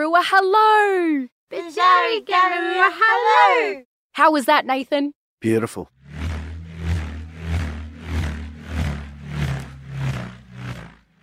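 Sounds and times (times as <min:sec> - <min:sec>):
speech: 0:00.2 - 0:05.9
bullroarer whirring: 0:05.9 - 0:11.2.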